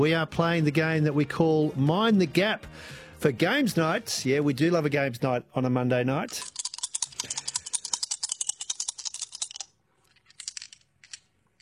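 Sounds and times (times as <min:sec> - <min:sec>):
speech: 0:00.0 - 0:06.6
dice being tumbled and thrown: 0:06.3 - 0:11.6.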